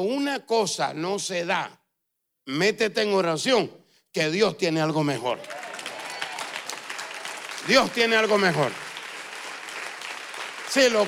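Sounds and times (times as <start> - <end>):
speech: 0.0 - 1.8, 2.4 - 5.6, 7.6 - 8.8, 10.8 - 11.0
audience applauding: 5.3 - 11.0.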